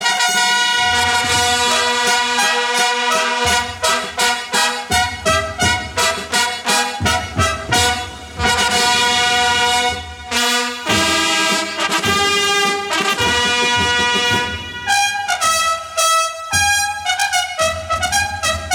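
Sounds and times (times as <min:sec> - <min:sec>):
fanfare: 0:00.0 - 0:18.7.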